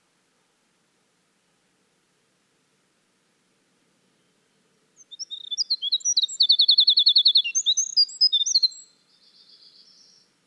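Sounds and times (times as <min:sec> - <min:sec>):
winter wren singing: 0:05.0 - 0:10.3.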